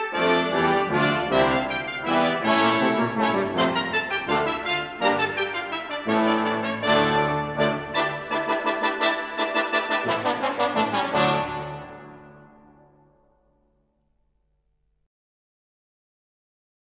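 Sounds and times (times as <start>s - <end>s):
music suite: 0.0s - 13.5s.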